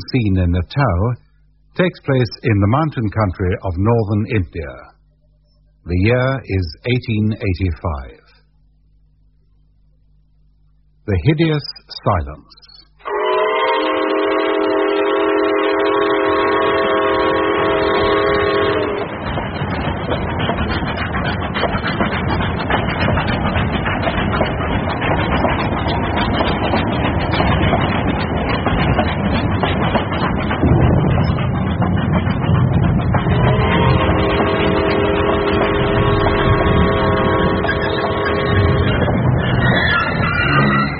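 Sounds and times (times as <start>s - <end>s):
speech: 0.0s - 1.2s, 1.8s - 4.9s, 5.8s - 8.2s, 11.1s - 12.7s
train whistle: 13.0s - 19.2s, 33.4s - 39.1s, 40.0s - 40.9s
train wheels and carriages clattering on the rails: 16.0s - 40.9s.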